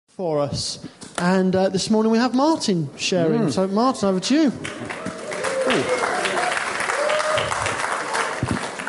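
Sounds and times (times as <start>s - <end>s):
speech: 0.2s - 6.0s
audience clapping: 4.6s - 8.8s.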